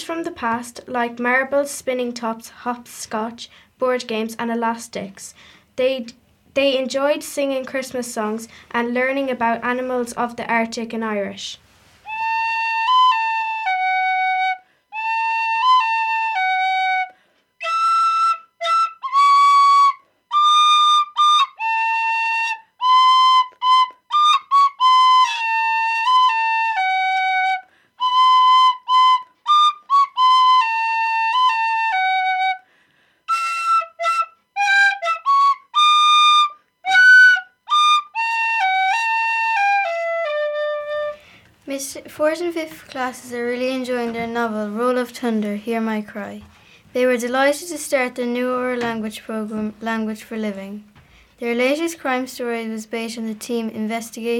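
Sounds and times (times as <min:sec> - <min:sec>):
speech: 0:00.1 - 0:11.6, 0:42.0 - 0:54.3
tin whistle playing a lively melody: 0:12.1 - 0:32.7, 0:33.3 - 0:41.2.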